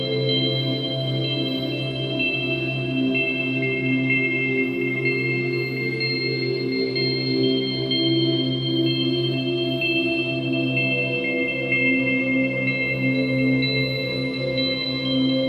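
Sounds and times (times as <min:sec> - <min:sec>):
tranquil dreamy light warm twinkly melody: 0:00.0 - 0:15.4.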